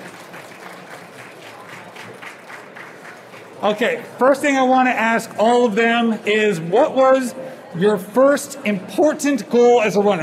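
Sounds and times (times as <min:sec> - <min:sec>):
audience applause: 0:00.0 - 0:03.9
speech: 0:03.6 - 0:10.2.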